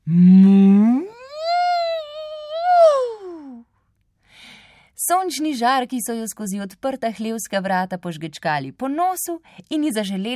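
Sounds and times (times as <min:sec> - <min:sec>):
person imitating a cow mooing: 0:00.0 - 0:01.3
speech: 0:00.1 - 0:00.4, 0:05.3 - 0:10.3.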